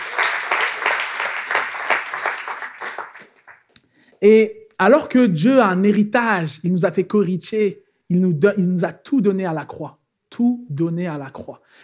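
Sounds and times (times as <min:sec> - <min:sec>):
church congregation applauding to acclaim Jesus: 0:00.0 - 0:03.7
speech: 0:04.2 - 0:11.8.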